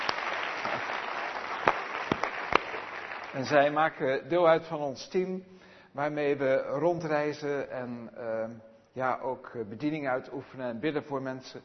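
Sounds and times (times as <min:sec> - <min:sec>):
audience applause: 0:00.0 - 0:03.8
speech: 0:03.4 - 0:11.6.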